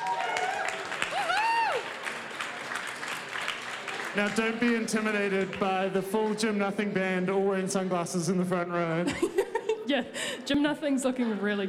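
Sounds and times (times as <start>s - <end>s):
audience cheering: 0.0s - 2.6s
speech: 4.2s - 11.6s
laughter: 8.9s - 10.4s.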